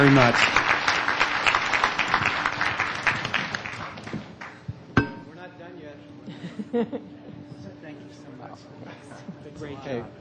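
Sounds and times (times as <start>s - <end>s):
speech: 0.0s - 0.6s
audience applause: 0.0s - 4.6s
laughter: 6.2s - 7.5s.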